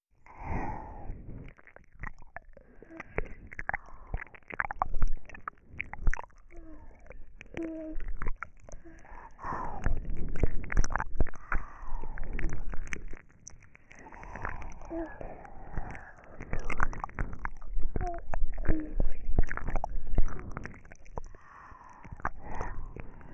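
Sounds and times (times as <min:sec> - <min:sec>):
ear licking with slurping: 0:00.3 - 0:23.3
slurping: 0:00.3 - 0:23.3.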